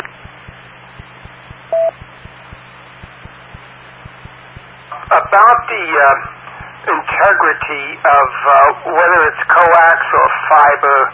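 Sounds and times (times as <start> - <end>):
steady low hum: 0.0 - 11.1
telephone touch-tone beep: 1.0 - 3.3
speech: 5.3 - 11.1.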